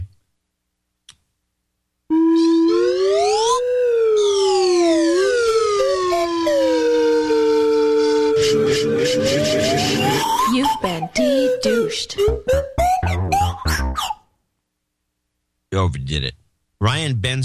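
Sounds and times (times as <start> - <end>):
slow slide whistle: 2.1 - 13.4
speech: 15.9 - 17.4.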